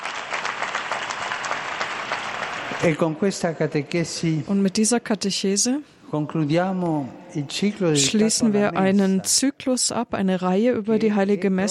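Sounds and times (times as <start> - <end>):
audience applauding: 0.0 - 3.1
speech: 2.8 - 11.6.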